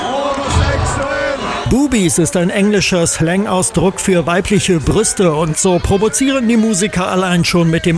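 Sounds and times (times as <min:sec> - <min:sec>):
crowd whooping: 0:00.2 - 0:02.1
concert crowd chanting in unison: 0:00.3 - 0:01.7
low thump: 0:00.5 - 0:01.7
speech: 0:01.7 - 0:07.9.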